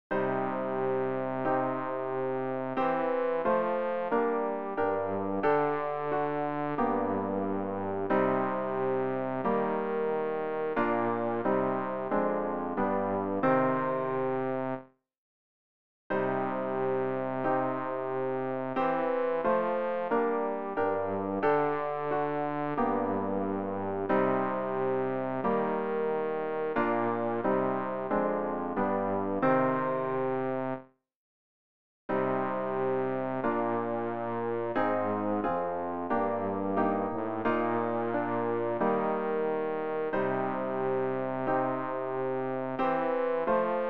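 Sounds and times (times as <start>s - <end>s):
bass: 0.5s - 14.8s, 16.5s - 30.8s, 32.5s - 43.8s.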